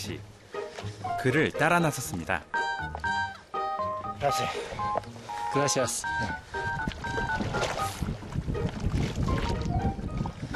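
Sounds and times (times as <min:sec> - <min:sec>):
speech: 0:00.0 - 0:03.2, 0:04.2 - 0:06.6
oars splashing as a fisherman rows a small boat: 0:00.3 - 0:10.5
light wind noise: 0:06.1 - 0:10.5.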